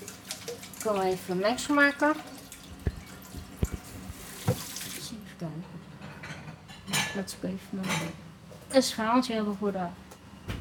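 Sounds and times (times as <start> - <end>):
water running from a tap while washing hands: 0.0 - 5.1
speech: 0.8 - 2.4, 7.2 - 10.0.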